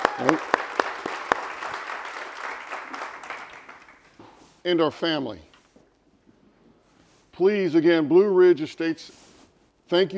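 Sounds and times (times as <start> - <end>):
audience applause: 0.0 - 4.2
speech: 4.6 - 5.5, 7.4 - 9.2, 9.9 - 10.1.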